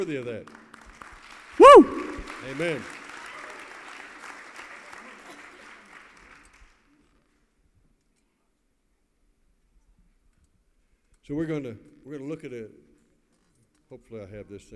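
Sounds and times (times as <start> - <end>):
speech: 0.0 - 0.6, 1.6 - 3.0, 11.3 - 12.8, 13.9 - 14.7
audience clapping: 0.0 - 6.9.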